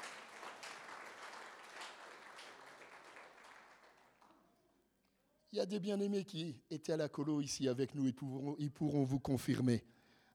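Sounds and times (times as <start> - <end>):
crowd applauding: 0.0 - 4.4
speech: 5.5 - 10.3.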